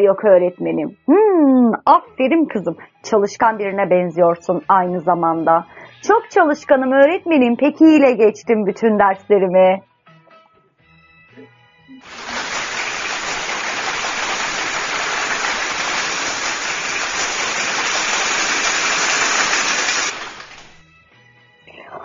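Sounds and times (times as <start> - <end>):
speech: 0.0 - 9.9
classroom applause: 12.0 - 20.8.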